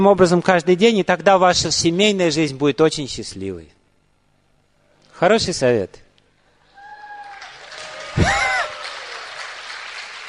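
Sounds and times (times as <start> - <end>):
speech: 0.0 - 3.8, 5.2 - 6.0, 8.2 - 8.4
audience applause, mostly women clapping: 6.8 - 10.2.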